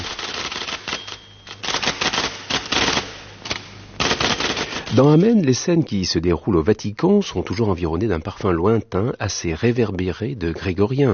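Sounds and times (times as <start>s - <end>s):
typewriter typing: 0.0s - 5.2s
speech: 4.9s - 11.1s.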